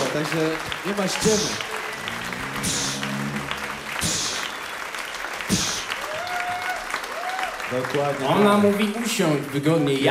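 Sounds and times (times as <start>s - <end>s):
studio audience applause: 0.0s - 10.1s
speech: 0.2s - 1.7s, 7.7s - 10.1s.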